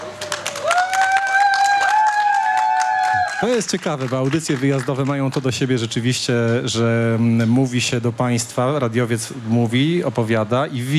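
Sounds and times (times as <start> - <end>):
sustained rising whistle or cheer: 0.0 - 3.6
audience applause: 0.0 - 7.4
speech: 3.4 - 10.9.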